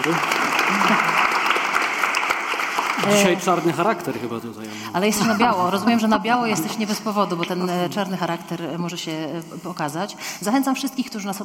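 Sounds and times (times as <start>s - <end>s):
speech: 0.0s - 1.2s, 3.0s - 11.4s
audience applause: 0.0s - 4.0s.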